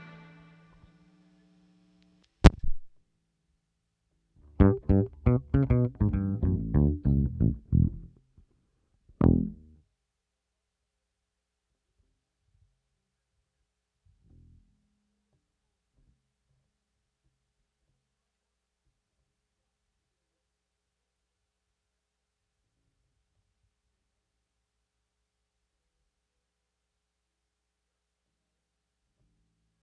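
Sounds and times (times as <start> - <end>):
strings: 0.0 - 1.0, 4.6 - 8.0.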